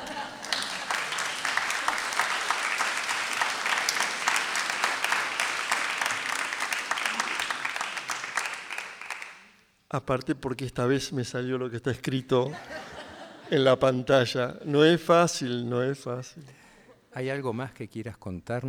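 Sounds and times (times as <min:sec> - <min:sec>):
laughter: 0:00.0 - 0:08.2, 0:12.4 - 0:14.8
audience applause: 0:00.0 - 0:09.5
speech: 0:09.9 - 0:12.8, 0:13.5 - 0:16.6, 0:17.2 - 0:18.6.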